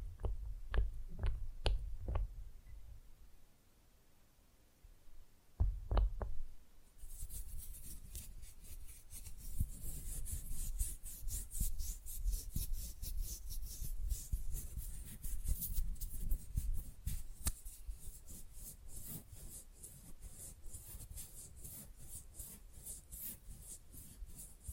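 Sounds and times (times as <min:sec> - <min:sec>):
tapping: 0:00.2 - 0:02.3, 0:05.6 - 0:06.4
fast rough nail filing: 0:07.0 - 0:24.7.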